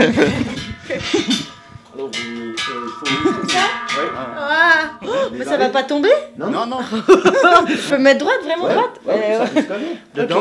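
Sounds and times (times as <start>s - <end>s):
speech: 0.0s - 1.3s, 3.0s - 10.3s
laughter: 0.0s - 1.5s, 6.8s - 8.0s
cowbells clanging: 0.0s - 6.2s.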